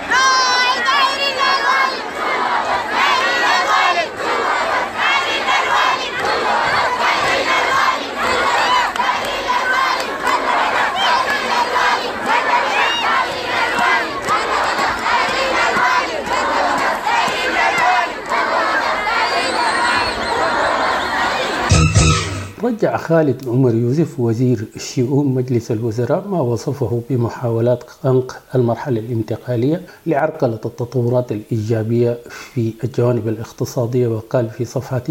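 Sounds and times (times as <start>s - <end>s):
protesting students chanting slogans: 0.0s - 22.6s
speech: 22.7s - 35.0s.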